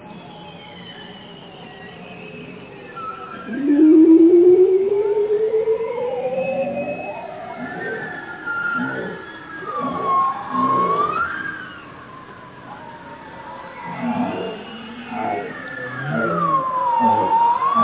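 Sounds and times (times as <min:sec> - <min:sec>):
bowhead whale song: 0:03.4 - 0:11.8, 0:13.7 - 0:17.8.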